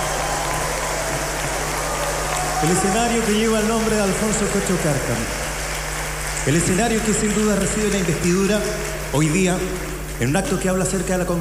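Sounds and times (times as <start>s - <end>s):
audience clapping for a singer at an outdoor commemoration ceremony in Chiloé: 0.0s - 11.3s
speech: 2.6s - 5.4s, 6.4s - 11.3s.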